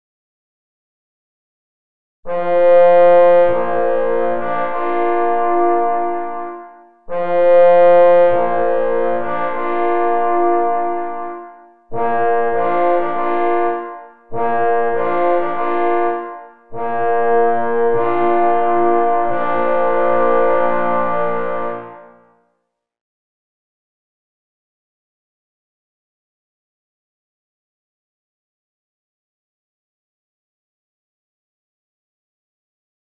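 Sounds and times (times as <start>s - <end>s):
3 parforce horns and 3 hunting horns playing occasional signals: 2.3s - 22.4s.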